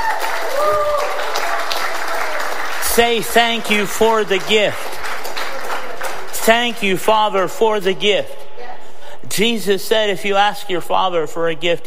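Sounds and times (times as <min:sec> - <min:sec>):
audience cheering: 0:00.0 - 0:04.6
audience clapping hands: 0:00.0 - 0:07.1
speech: 0:03.0 - 0:04.9, 0:06.4 - 0:08.4, 0:09.2 - 0:11.8.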